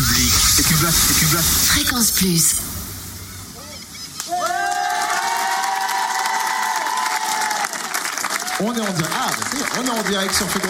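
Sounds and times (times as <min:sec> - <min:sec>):
speech: 0:00.8 - 0:02.8, 0:08.6 - 0:10.6
studio audience cheering and applauding in a large public studio: 0:04.2 - 0:10.6.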